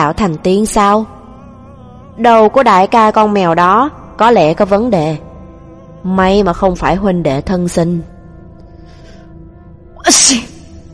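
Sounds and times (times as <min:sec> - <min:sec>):
speech: 0:00.0 - 0:01.2, 0:02.2 - 0:05.3, 0:06.0 - 0:08.1, 0:10.1 - 0:10.5
sneeze: 0:10.1 - 0:10.6.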